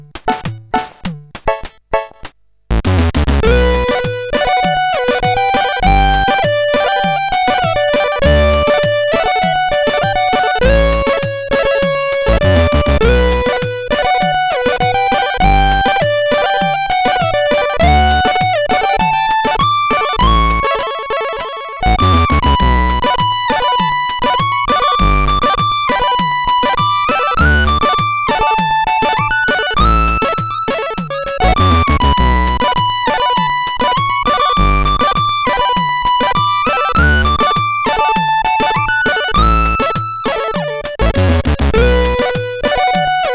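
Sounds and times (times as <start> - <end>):
tune on CSG8580R5 chip: 0.3 - 43.3.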